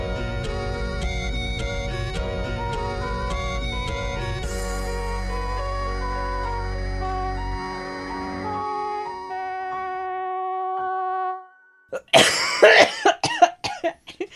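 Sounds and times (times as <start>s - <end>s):
electronic music: 0.0s - 12.8s
smoker's cough: 12.0s - 14.3s.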